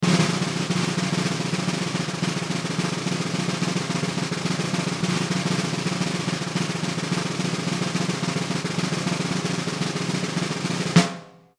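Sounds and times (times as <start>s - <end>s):
drum roll: 0.0s - 11.5s.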